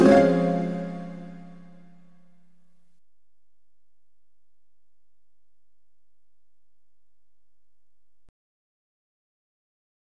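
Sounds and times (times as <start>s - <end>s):
harp: 0.0s - 2.0s.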